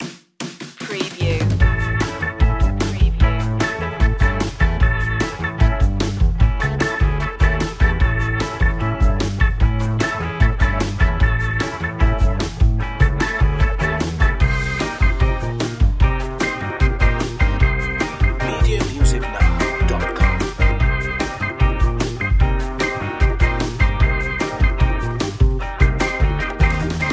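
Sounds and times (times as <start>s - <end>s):
brisk funny fight music: 0.0s - 27.1s.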